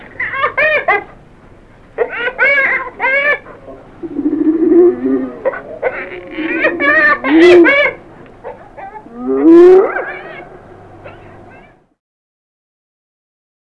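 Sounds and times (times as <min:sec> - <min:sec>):
hyena: 0:02.0 - 0:11.9.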